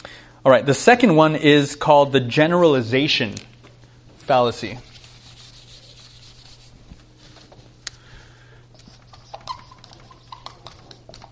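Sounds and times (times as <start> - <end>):
speech: 0.4 - 3.5, 4.3 - 4.9
handwriting strokes scratching: 4.9 - 6.8, 8.8 - 11.3.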